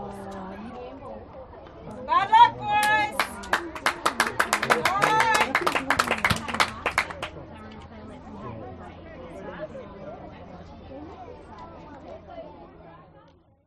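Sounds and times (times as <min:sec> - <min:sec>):
parents and children cheering at a school soccer competition: 0:02.2 - 0:07.3.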